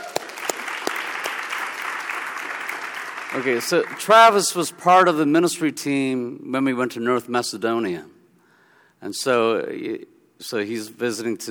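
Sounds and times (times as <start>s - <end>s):
audience applause welcoming a visitor at a church gathering: 0.0s - 4.6s
speech: 3.3s - 8.2s, 9.0s - 11.5s.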